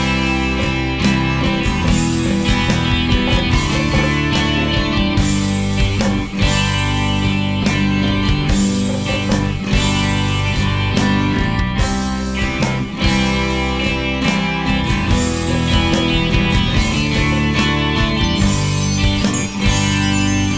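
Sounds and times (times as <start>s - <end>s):
ambient guitars: 0.0s - 20.5s.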